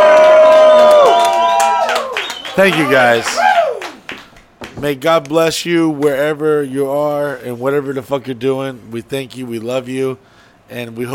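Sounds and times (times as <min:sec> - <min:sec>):
studio audience cheering and making noise: 0:00.0 - 0:04.2
speech: 0:02.6 - 0:03.5, 0:04.8 - 0:11.1.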